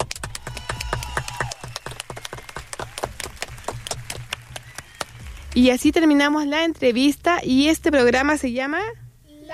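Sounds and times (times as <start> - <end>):
audience applause: 0.0 - 5.6
speech: 5.6 - 9.0.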